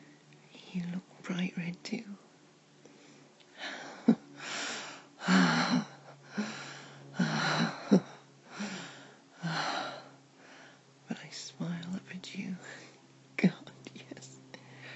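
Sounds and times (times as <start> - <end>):
speech: 0.8 - 2.3
heavy gasping breaths: 3.0 - 10.8, 14.6 - 14.9.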